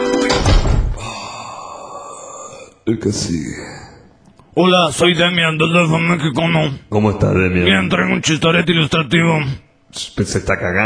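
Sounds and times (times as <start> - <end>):
door closing thunk: 0.1 - 1.0
speech: 2.9 - 3.8, 4.6 - 10.8.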